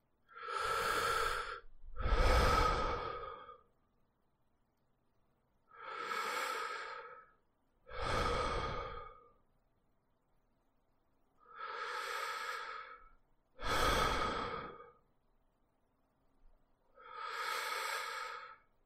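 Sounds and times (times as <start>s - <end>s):
breathing: 0.3s - 3.8s, 5.7s - 9.4s, 11.4s - 15.1s, 16.9s - 18.7s.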